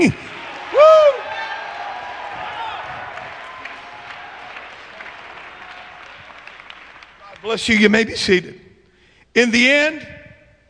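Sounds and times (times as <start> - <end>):
speech: 0.0 - 0.2, 7.4 - 8.7, 9.3 - 10.2
audience clapping: 0.0 - 7.8.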